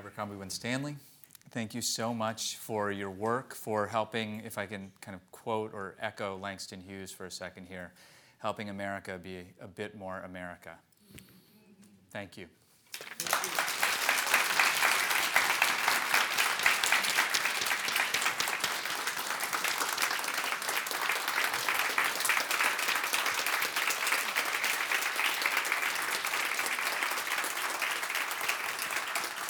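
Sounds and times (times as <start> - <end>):
speech: 0.2 - 11.2, 12.1 - 13.1
large crowd standing ovation applause: 12.9 - 29.4.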